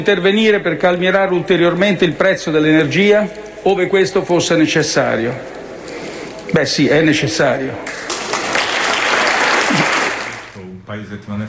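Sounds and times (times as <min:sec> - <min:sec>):
speech: 0:00.0 - 0:05.6, 0:06.5 - 0:08.2, 0:10.9 - 0:11.4
thunderous applause after a speech: 0:07.8 - 0:10.6.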